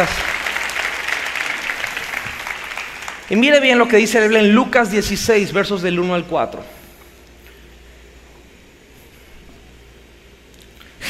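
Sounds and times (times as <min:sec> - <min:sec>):
speech: 0:00.0 - 0:00.3, 0:03.3 - 0:06.8
audience applause: 0:00.0 - 0:03.7.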